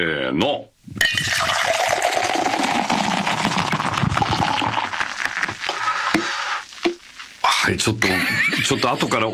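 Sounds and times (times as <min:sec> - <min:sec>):
speech: 0:00.0 - 0:01.6, 0:07.6 - 0:09.3
beer poured from can into tumbler: 0:01.0 - 0:07.0
laughter: 0:08.0 - 0:09.3.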